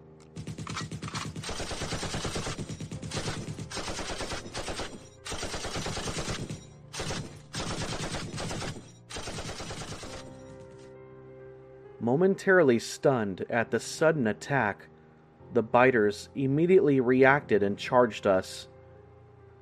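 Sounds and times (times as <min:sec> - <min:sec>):
automatic rifle fire in a zombie drama: 0:00.4 - 0:10.6
speech: 0:12.0 - 0:14.9, 0:15.5 - 0:18.7.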